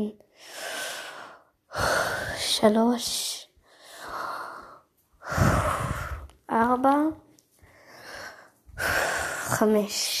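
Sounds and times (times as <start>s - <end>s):
speech: 0.0s - 0.7s, 1.8s - 3.3s, 6.8s - 7.2s, 9.5s - 10.1s
slow deep breathing during a guided exercise: 0.3s - 2.6s, 3.6s - 6.4s, 7.6s - 9.8s.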